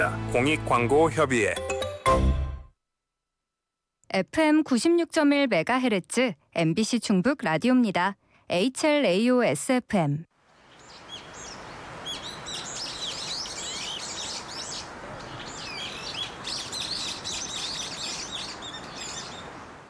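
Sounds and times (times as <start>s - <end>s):
speech: 0.0s - 2.3s, 4.1s - 10.3s
soft constant rushing hiss: 10.4s - 19.8s
many birds singing and chirping: 10.7s - 19.8s.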